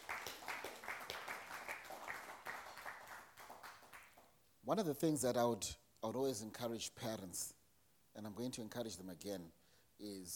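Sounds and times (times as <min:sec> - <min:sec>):
audience applause: 0:00.0 - 0:04.2
speech: 0:04.7 - 0:07.6, 0:08.2 - 0:10.3.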